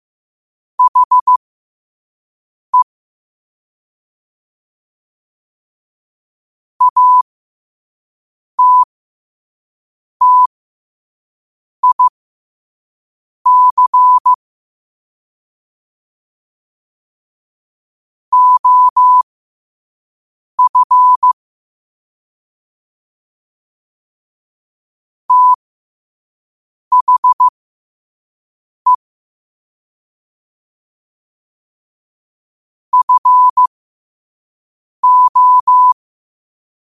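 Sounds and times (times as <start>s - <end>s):
morse code at 5 wpm: 0.8s - 1.4s, 6.8s - 7.2s, 8.6s - 8.9s, 10.2s - 10.5s, 11.8s - 12.1s, 13.5s - 14.4s, 18.4s - 19.2s, 20.6s - 21.4s, 25.3s - 25.6s, 26.9s - 27.5s, 33.0s - 33.7s, 35.0s - 36.0s.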